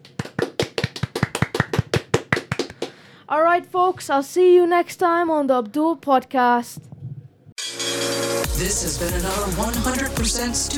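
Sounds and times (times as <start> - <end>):
one or two people clapping: 0.0 - 3.0
speech: 3.3 - 6.9, 8.6 - 10.7.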